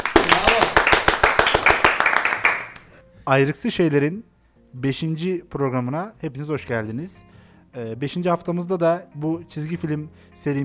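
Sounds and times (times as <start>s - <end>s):
group clapping: 0.0s - 2.9s
speech: 3.2s - 10.6s.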